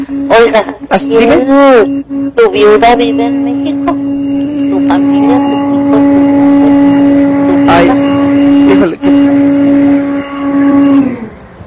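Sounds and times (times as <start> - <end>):
speech: 0.1 - 4.1, 4.9 - 5.6
blender running: 4.6 - 11.3.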